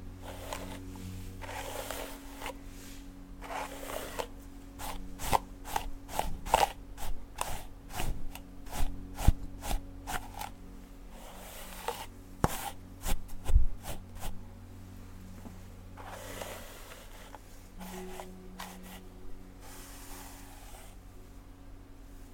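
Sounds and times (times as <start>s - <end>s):
hairbrush bristle strokes through loose hair: 0.2s - 10.5s, 11.1s - 14.4s, 16.0s - 21.0s.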